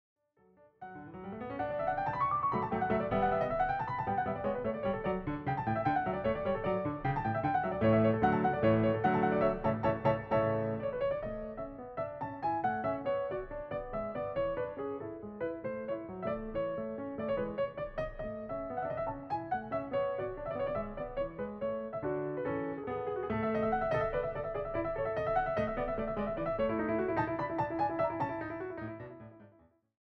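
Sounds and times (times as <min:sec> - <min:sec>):
piano sonata in D major allegro con spirito: 0:00.4 - 0:29.8.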